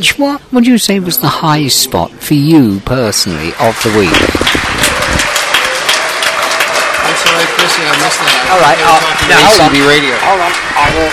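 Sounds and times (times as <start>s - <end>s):
speech: 0.0s - 4.7s, 7.4s - 11.1s
applause: 3.5s - 11.1s.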